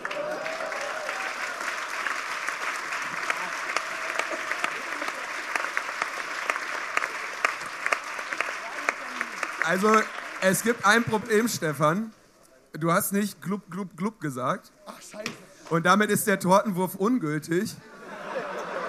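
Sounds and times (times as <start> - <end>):
applause: 0.0 - 11.7
speech: 9.7 - 17.9
laughter: 17.8 - 18.8.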